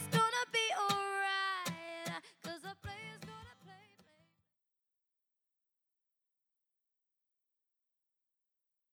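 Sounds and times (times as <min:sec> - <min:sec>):
acoustic song: 0:00.0 - 0:04.3.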